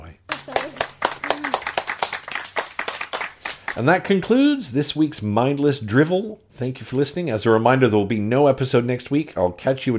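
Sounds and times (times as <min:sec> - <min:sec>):
small group clapping hands: 0:00.3 - 0:04.0
speech: 0:03.8 - 0:09.9.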